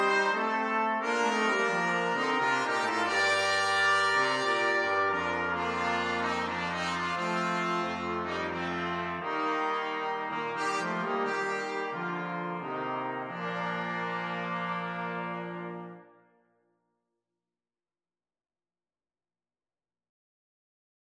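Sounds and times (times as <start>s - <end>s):
jazz brass quartet: 0.0s - 16.1s.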